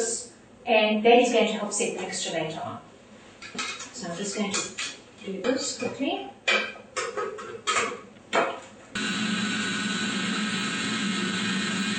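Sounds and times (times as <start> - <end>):
speech: 0.7 - 2.9, 3.5 - 6.6
blender blending pate mixture: 9.0 - 11.9.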